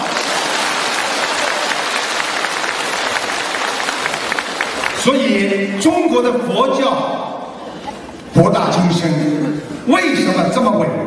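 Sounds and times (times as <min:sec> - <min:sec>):
audience applause: 0:00.0 - 0:05.7
speech: 0:05.0 - 0:07.2, 0:08.4 - 0:11.0.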